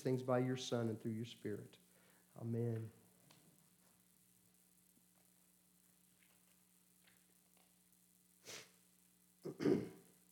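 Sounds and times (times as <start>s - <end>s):
speech: 0.0s - 1.8s, 2.4s - 3.0s, 9.4s - 10.0s
person coughing: 9.5s - 10.0s.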